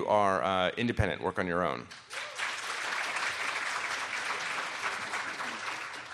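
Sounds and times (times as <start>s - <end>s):
speech: 0.1s - 2.2s
crowd applauding: 1.9s - 6.1s.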